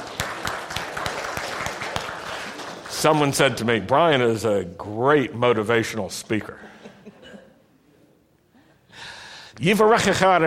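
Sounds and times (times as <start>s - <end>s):
audience applause: 0.0s - 3.4s
speech: 3.0s - 6.8s, 9.6s - 10.4s.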